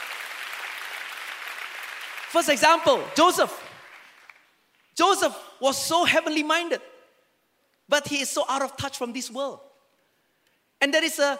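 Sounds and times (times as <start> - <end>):
audience applause: 0.0 - 4.5
speech: 2.3 - 3.6, 5.0 - 6.9, 7.9 - 9.7, 10.8 - 11.3.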